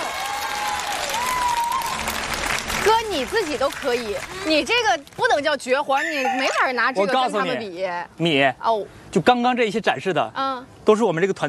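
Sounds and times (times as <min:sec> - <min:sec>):
audience applauding a stage stunt performance: 0:00.0 - 0:05.2
speech: 0:03.0 - 0:11.4.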